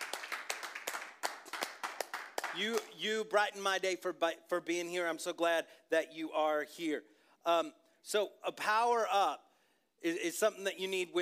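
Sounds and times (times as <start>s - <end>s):
church congregation clapping hands: 0.0s - 3.1s
speech: 2.6s - 9.4s, 10.0s - 11.2s.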